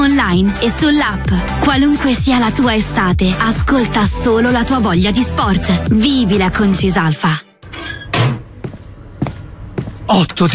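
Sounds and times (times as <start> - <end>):
speech: 0.2 - 7.4, 10.1 - 10.5
third-floor flat front door opening: 8.0 - 8.5.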